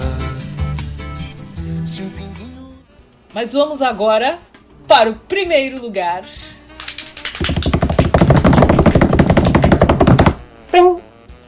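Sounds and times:
speech: 3.4s - 6.5s
hand banging on a table: 7.4s - 10.4s.

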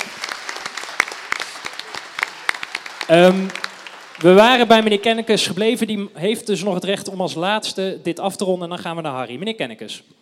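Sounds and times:
audience applause: 0.0s - 5.3s
speech: 3.1s - 3.6s, 4.2s - 10.2s.

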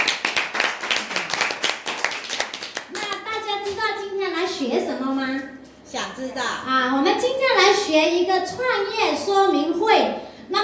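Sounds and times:
audience applause: 0.0s - 3.2s
speech: 4.6s - 10.6s.

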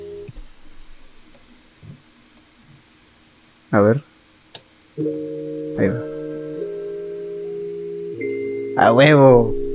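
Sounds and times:
speech: 3.7s - 4.1s, 5.0s - 6.1s, 8.8s - 9.6s
Game Boy sound in a song: 5.0s - 9.7s.

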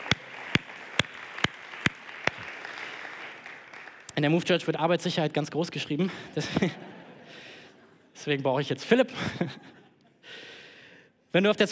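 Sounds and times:
audience applause: 0.0s - 4.1s
speech: 4.2s - 6.9s, 8.2s - 9.8s, 11.3s - 11.7s.

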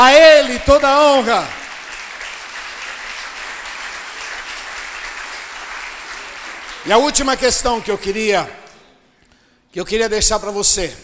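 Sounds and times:
speech: 0.0s - 1.6s, 6.8s - 8.6s, 9.7s - 11.0s
audience applause: 1.5s - 7.6s.

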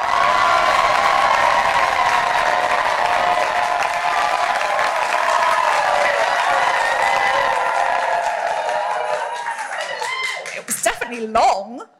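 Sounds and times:
large crowd cheering and applauding: 0.0s - 11.3s.

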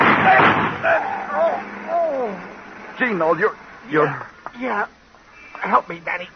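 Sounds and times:
gunshot in a radio drama: 0.0s - 1.2s
speech: 3.0s - 5.0s, 5.6s - 6.3s.

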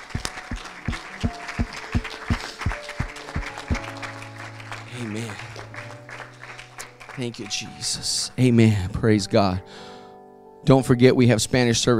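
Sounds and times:
audience clapping hands: 0.0s - 8.0s
speech: 7.2s - 9.9s, 10.6s - 11.9s.

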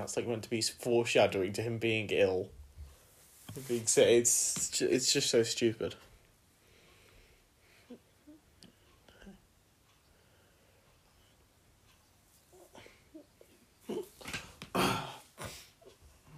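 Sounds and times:
speech: 0.0s - 2.6s, 3.5s - 6.1s
person coughing: 13.9s - 15.7s.

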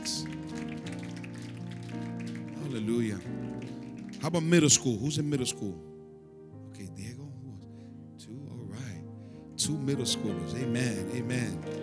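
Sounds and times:
crowd clapping: 0.0s - 4.9s, 10.3s - 11.8s
speech: 2.8s - 3.5s, 4.2s - 5.9s, 9.7s - 11.8s.

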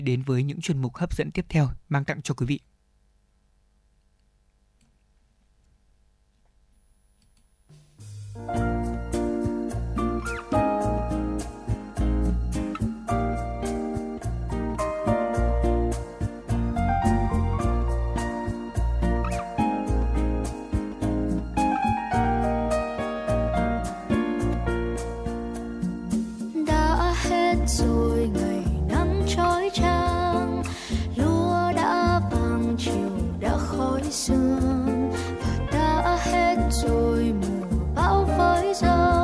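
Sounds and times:
speech: 0.0s - 2.7s
song: 8.2s - 39.2s.

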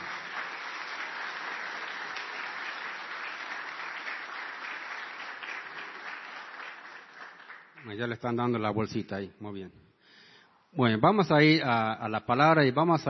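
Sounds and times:
audience applause: 0.0s - 8.0s
speech: 7.8s - 9.9s, 10.8s - 13.0s.

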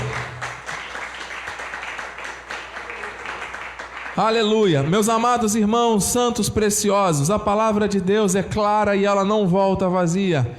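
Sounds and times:
audience applause: 0.0s - 5.1s
speech: 4.2s - 10.5s.

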